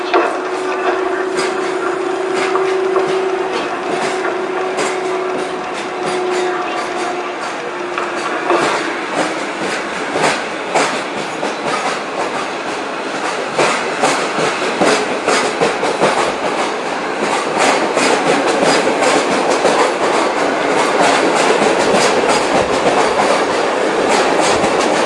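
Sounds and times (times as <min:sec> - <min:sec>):
SKM commuter train on line S30 at a Warsaw station platform: 0:00.0 - 0:25.0.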